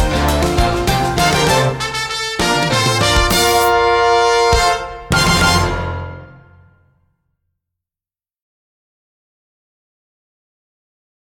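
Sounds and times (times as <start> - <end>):
instrumental music without vocals: 0.0 - 7.0.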